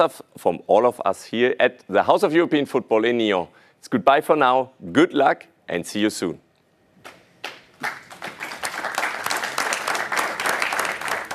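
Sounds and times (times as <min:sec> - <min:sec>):
speech: 0:00.0 - 0:06.4
audience applause after the draw: 0:07.8 - 0:11.3.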